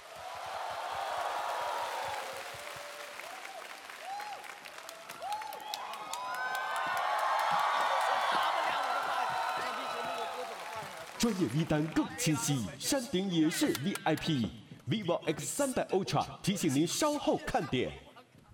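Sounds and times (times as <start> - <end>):
audience applause: 0.0 - 12.6
speech: 11.2 - 18.0.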